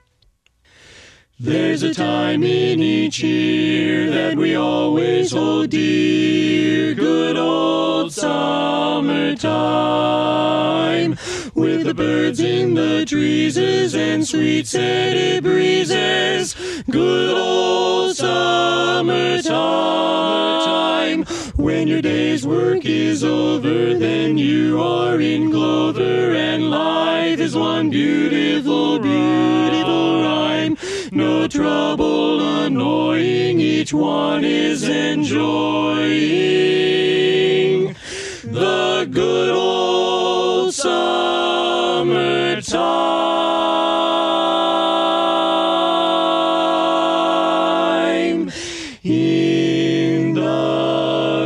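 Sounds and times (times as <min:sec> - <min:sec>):
tenor singing: 0:01.4 - 0:51.4.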